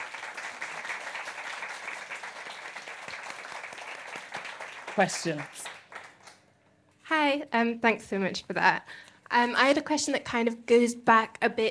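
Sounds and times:
audience applause: 0.0s - 6.4s
speech: 5.0s - 5.6s, 7.3s - 11.6s.

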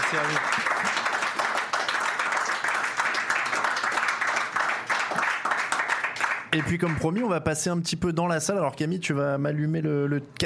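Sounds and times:
crowd applauding: 0.0s - 7.4s
speech: 0.1s - 0.8s, 6.5s - 10.4s.

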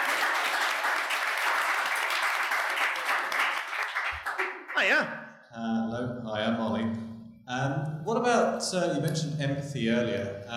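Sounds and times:
round of applause: 0.0s - 5.0s
speech: 4.8s - 7.9s, 8.6s - 10.5s.

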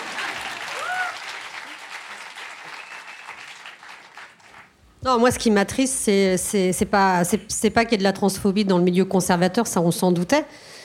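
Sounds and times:
audience applause: 0.0s - 4.8s
speech: 5.0s - 10.7s.

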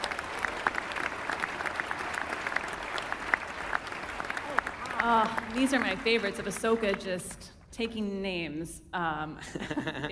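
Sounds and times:
crowd applauding: 0.0s - 7.3s
speech: 5.0s - 10.0s
laughter: 9.4s - 10.0s.

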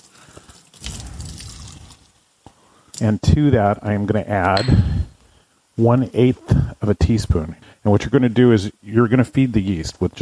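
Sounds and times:
warm water poured into a bowl to prepare yeast: 0.0s - 2.2s
speech: 3.0s - 4.9s, 5.8s - 10.2s.

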